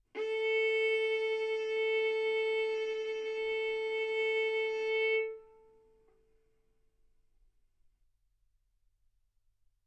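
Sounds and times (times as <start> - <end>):
violin bowed mezzo-forte on the A string, A4 and B4: 0.2 - 5.6.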